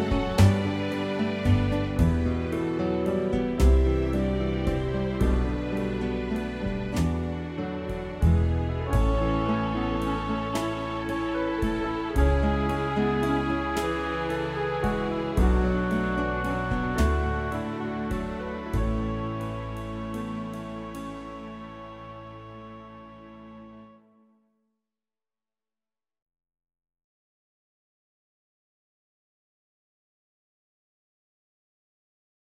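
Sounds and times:
backing track: 0.0s - 23.9s.

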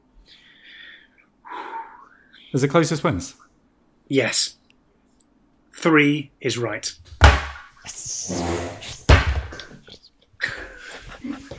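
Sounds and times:
speech: 2.5s - 3.4s, 4.1s - 4.6s, 5.8s - 7.2s, 7.9s - 8.9s
objects slammed down onto a table: 7.2s - 7.7s, 8.5s - 9.6s.

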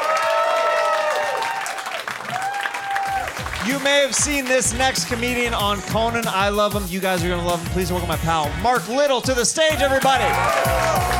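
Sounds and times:
audience applause for a stand-up comedian: 0.0s - 5.8s, 10.0s - 11.1s
speech: 3.6s - 11.1s.

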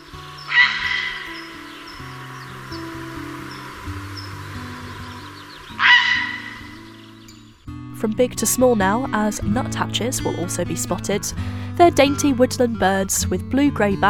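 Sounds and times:
heron calls: 0.0s - 7.3s
soft steady music: 0.0s - 14.0s
speech: 8.0s - 14.0s.

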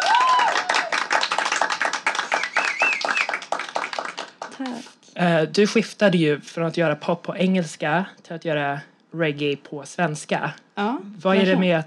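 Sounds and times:
applause, clapping hands: 0.0s - 4.9s
speech: 4.6s - 11.8s.

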